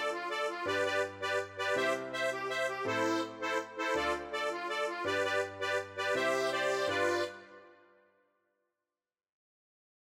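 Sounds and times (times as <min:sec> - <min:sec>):
schottische mazurka rhythm: 0:00.0 - 0:07.6.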